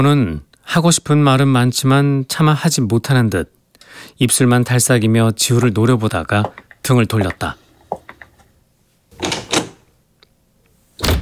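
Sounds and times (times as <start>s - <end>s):
speech: 0.0s - 7.6s, 9.2s - 9.4s
room door slammed shut with a bang: 9.2s - 9.8s, 11.0s - 11.1s.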